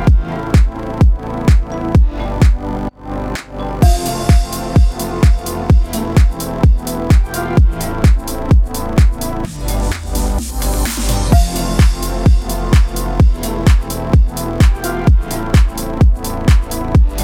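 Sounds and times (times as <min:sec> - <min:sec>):
Halloween EDM music bed in F minor at 128 BPM: 0:00.0 - 0:17.2.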